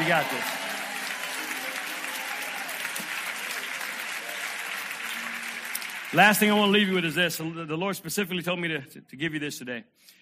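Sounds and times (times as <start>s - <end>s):
audience shouting praise: 0.0s - 6.7s
speech: 0.1s - 0.7s, 6.1s - 10.2s.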